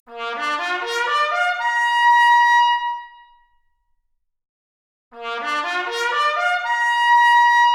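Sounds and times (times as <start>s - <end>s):
trumpet arpeggio: 0.2s - 1.9s, 5.2s - 7.6s.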